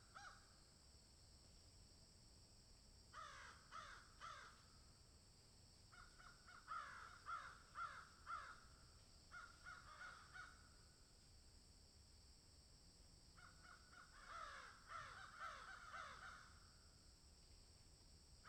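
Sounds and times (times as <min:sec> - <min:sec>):
several crows cawing in a field: 0:00.1 - 0:00.4, 0:03.2 - 0:04.6, 0:05.9 - 0:08.7, 0:09.3 - 0:10.7, 0:13.4 - 0:16.6.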